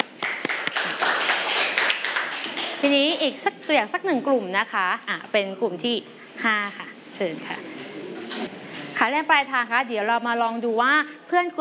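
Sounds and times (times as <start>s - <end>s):
class clapping for a student group representative: 0.0s - 2.9s
speech: 2.8s - 7.7s, 8.4s - 11.6s.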